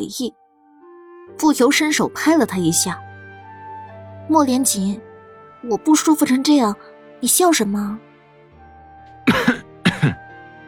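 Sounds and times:
speech: 0:00.0 - 0:00.4, 0:01.3 - 0:03.1, 0:04.3 - 0:08.1
man coughing awkwardly: 0:09.3 - 0:10.3.

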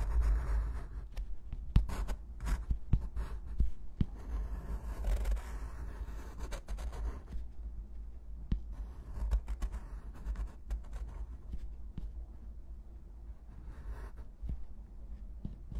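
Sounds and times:
pencil and fountain pen writing: 0:00.0 - 0:07.6, 0:08.6 - 0:12.1, 0:13.5 - 0:14.7.

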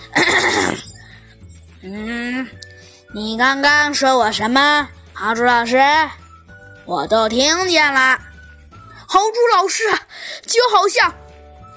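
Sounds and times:
throat clearing: 0:00.1 - 0:00.9
speech: 0:01.8 - 0:06.2, 0:06.9 - 0:08.3, 0:09.1 - 0:11.2.

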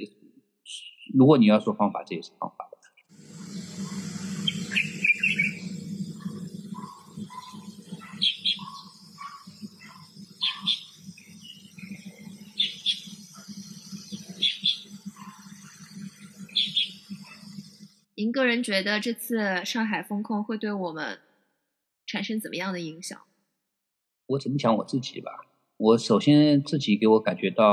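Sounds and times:
bright high bird chirping recorded from a balcony: 0:00.7 - 0:01.2, 0:03.0 - 0:18.0
speech: 0:01.2 - 0:02.6, 0:18.2 - 0:21.2, 0:22.1 - 0:23.3, 0:24.3 - 0:27.7
faint insect-like buzz: 0:03.1 - 0:18.1
steady low hum: 0:03.1 - 0:18.1.

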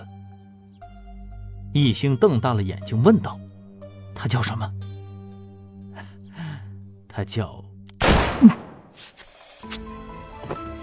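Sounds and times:
speech: 0:01.7 - 0:03.4, 0:04.2 - 0:04.8, 0:07.2 - 0:07.7, 0:08.4 - 0:08.6
gunshot: 0:08.0 - 0:09.1.

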